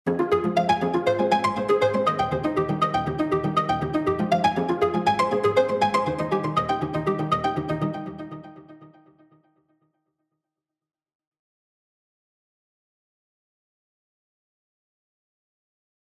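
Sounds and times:
analog plucked strings arpeggiator with tone modulation: 0:00.1 - 0:08.9.

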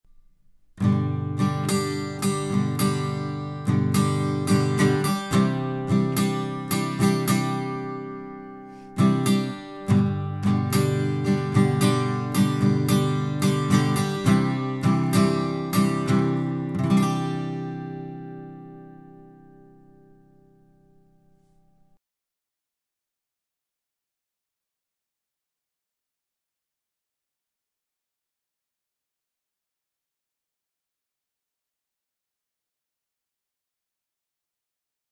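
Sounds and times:
Telefunken TF39 guitar: 0:00.1 - 0:22.0.

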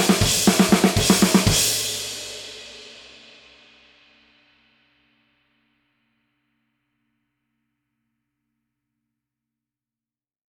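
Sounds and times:
20-inch traditional extra thin hammered crash cymbal: 0:00.0 - 0:05.0.

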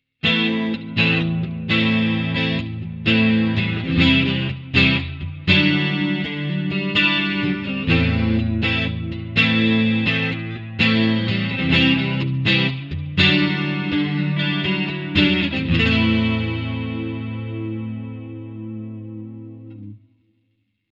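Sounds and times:
twin chorus effect sound: 0:00.2 - 0:20.1.

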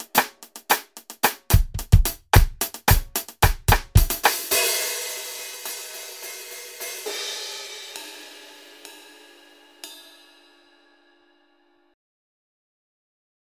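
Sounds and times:
drum kit: 0:00.0 - 0:10.6.

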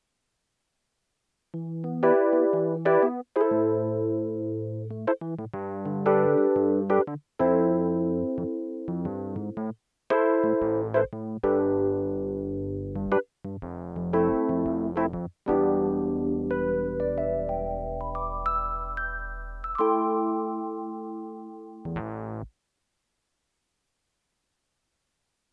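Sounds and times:
Rhodes electric piano with chorus and flanger: 0:01.8 - 0:13.2, 0:14.0 - 0:22.0.

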